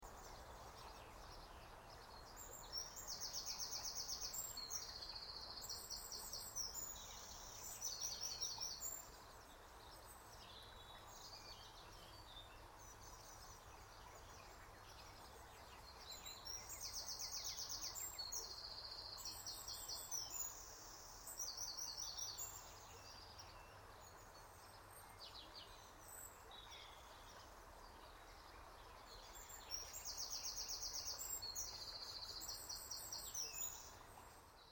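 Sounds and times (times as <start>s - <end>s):
birdsong: 0.0s - 34.6s.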